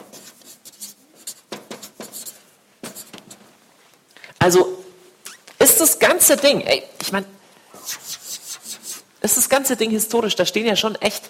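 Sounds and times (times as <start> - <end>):
writing on a board during an evening talk: 0.0 - 3.4, 7.8 - 9.0
speech: 4.4 - 4.8, 5.8 - 7.4, 9.2 - 11.2.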